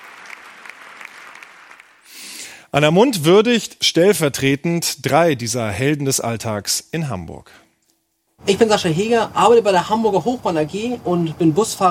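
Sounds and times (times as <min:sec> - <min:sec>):
applause in the German Bundestag: 0:00.0 - 0:02.1
speech: 0:02.7 - 0:07.6, 0:08.4 - 0:11.8.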